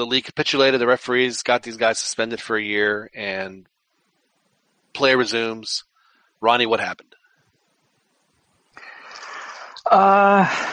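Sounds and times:
speech: 0.0s - 3.7s, 4.9s - 7.2s, 9.8s - 10.7s
loud inhale: 8.8s - 9.8s.

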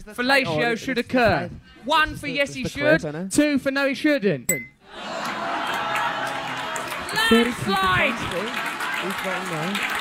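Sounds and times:
speech: 0.0s - 5.3s, 7.2s - 9.9s
audience clapping: 5.1s - 9.9s.

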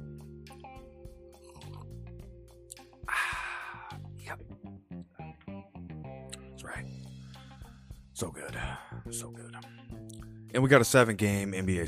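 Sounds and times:
person slurping coffee: 1.4s - 2.0s
speech: 8.2s - 11.8s.

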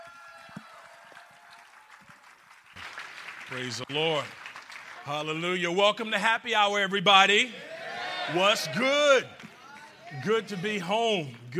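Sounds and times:
audience applause: 0.0s - 5.2s
speech: 3.5s - 4.4s, 5.0s - 7.7s, 8.3s - 9.5s, 10.1s - 11.5s.

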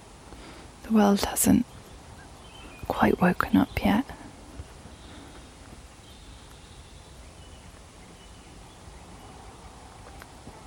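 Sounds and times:
low rumble of noise: 0.0s - 10.6s
speech: 0.9s - 1.7s, 3.0s - 4.2s
faint dawn bird calls: 1.6s - 10.6s.

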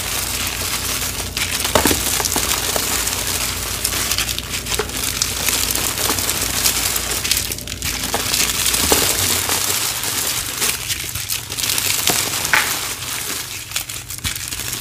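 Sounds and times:
cornstarch powder squeezed and pressed, crunching and squeaking: 0.0s - 14.8s
low hum: 0.0s - 14.8s.

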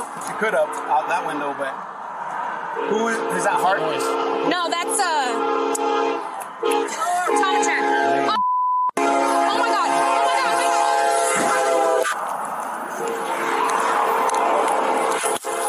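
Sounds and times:
speech: 0.4s - 1.9s, 2.8s - 8.4s
train horn blaring: 2.8s - 8.4s, 9.0s - 12.2s, 12.9s - 14.1s, 14.7s - 15.6s
brief electronic beep: 8.4s - 8.9s
train rushing past with a heavy roaring rumble: 9.2s - 15.6s.

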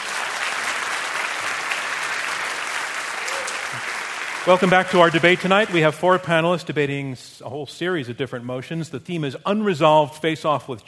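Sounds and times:
audience round of applause: 0.0s - 6.3s
speech: 4.4s - 10.8s.

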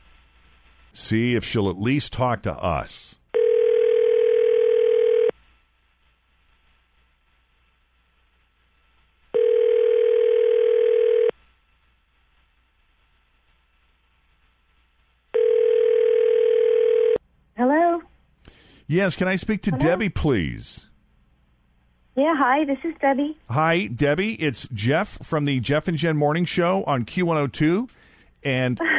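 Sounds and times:
speech: 0.9s - 3.2s, 18.9s - 20.9s, 22.2s - 28.9s
telephone ringing: 3.3s - 5.3s, 9.3s - 11.3s, 15.3s - 17.2s.

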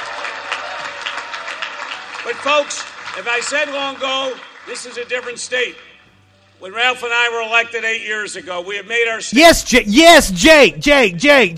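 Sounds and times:
crowd applause: 0.0s - 5.4s
speech: 2.2s - 5.9s, 6.6s - 11.5s.

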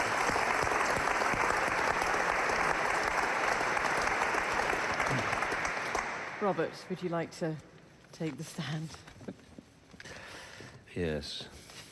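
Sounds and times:
audience applause: 0.0s - 7.0s
speech: 6.4s - 9.4s, 10.9s - 11.6s.

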